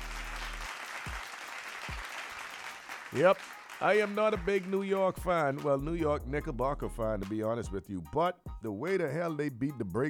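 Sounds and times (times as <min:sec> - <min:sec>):
applause: 0:00.0 - 0:05.3
speech: 0:03.1 - 0:10.0.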